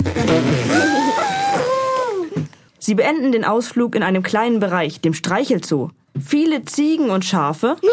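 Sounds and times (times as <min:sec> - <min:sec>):
elephant trumpeting loudly: 0:00.2 - 0:02.1
speech: 0:02.9 - 0:07.9.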